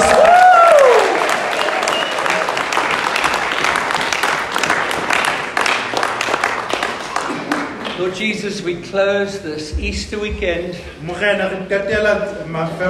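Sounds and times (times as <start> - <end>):
audience cheering and applauding: 0.0 - 8.0
speech: 8.1 - 12.8.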